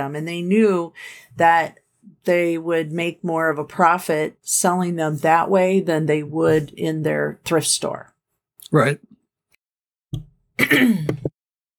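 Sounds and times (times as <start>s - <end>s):
speech: 0.0s - 8.1s, 8.7s - 9.1s, 10.1s - 11.3s
throat clearing: 10.6s - 11.3s.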